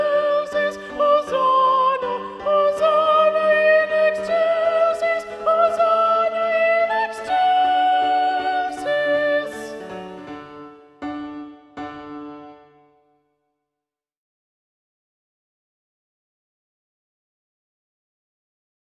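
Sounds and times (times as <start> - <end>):
soprano singing: 0.0 - 10.7.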